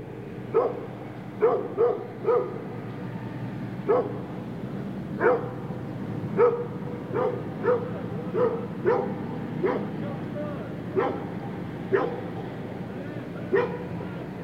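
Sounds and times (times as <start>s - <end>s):
rumbling background noise: 0.0s - 14.4s
muffled dog barks: 0.5s - 2.7s, 3.9s - 4.2s, 5.2s - 5.6s, 6.4s - 10.0s, 10.9s - 12.3s, 13.5s - 14.0s.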